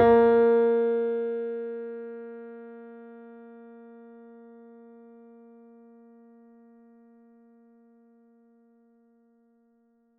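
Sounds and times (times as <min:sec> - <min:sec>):
mini grand piano: 0:00.0 - 0:03.3.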